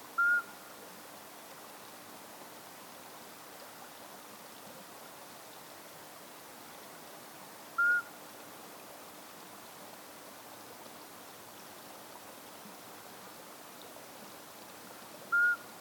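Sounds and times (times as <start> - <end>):
Iberian midwife toad Alytes cisternasii calling: 0.2 - 0.6, 7.8 - 8.1, 15.3 - 15.7.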